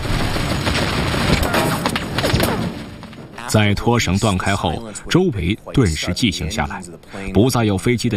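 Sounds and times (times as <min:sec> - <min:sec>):
gunfire barrage with cracks, pops and rumbling booms: 0:00.0 - 0:04.2
speech: 0:03.5 - 0:08.1.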